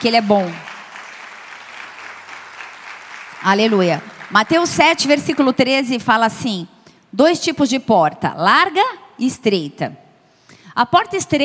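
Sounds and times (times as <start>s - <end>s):
speech: 0.0s - 0.6s, 3.4s - 10.0s, 10.8s - 11.4s
audience applauding: 0.0s - 5.7s.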